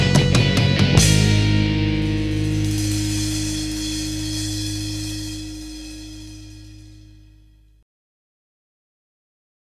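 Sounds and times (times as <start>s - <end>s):
instrumental music: 0.0s - 7.5s.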